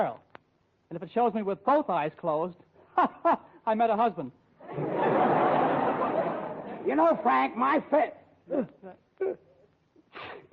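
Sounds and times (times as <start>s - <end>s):
speech: 0.0s - 0.2s, 0.9s - 5.4s, 6.8s - 9.5s, 10.2s - 10.5s
laughter: 4.6s - 7.4s
person sneezing: 8.5s - 10.5s.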